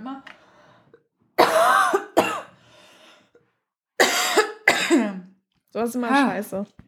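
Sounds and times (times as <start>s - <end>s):
coughing: 1.4s - 2.6s, 4.0s - 5.3s
speech: 5.8s - 6.8s.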